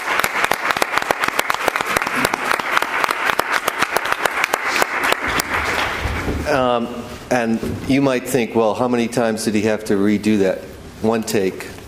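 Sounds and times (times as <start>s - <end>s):
audience applause: 0.0s - 6.3s
speech: 6.5s - 11.7s.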